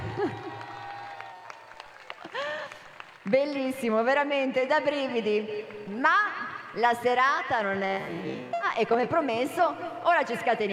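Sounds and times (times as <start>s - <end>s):
audience whooping: 0.0s - 2.6s
crowd applauding: 0.0s - 3.6s
speech: 3.3s - 10.7s.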